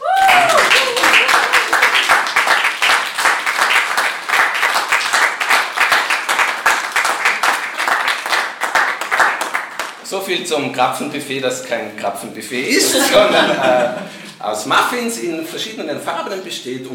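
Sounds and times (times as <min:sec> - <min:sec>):
brief cheer: 0:00.0 - 0:02.1
audience applauding: 0:00.0 - 0:10.0
speech: 0:10.3 - 0:16.9
laughter: 0:12.6 - 0:14.4.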